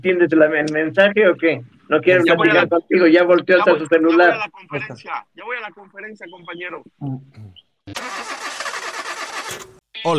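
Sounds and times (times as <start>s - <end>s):
speech: 0.0s - 8.6s, 9.5s - 10.1s
car engine cranking and starting: 7.9s - 9.8s.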